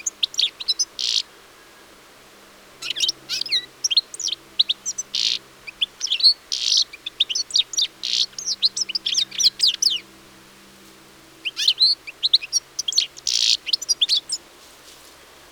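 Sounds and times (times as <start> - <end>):
European goldfinch Carduelis carduelis twittering: 0.0 - 1.3, 2.8 - 10.1, 11.4 - 14.4.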